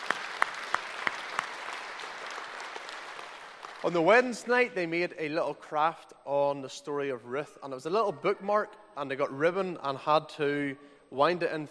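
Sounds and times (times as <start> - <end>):
round of applause: 0.0 - 4.4
speech: 3.8 - 11.6.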